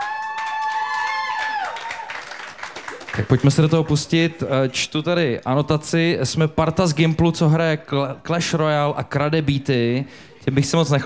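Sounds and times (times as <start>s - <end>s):
audience applause: 0.0s - 4.8s
speech: 3.2s - 11.0s.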